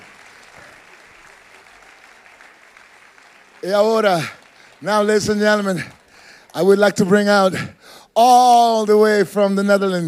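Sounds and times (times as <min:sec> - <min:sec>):
faint audience applause for a band at a live show: 0:00.0 - 0:07.8
speech: 0:03.6 - 0:10.0.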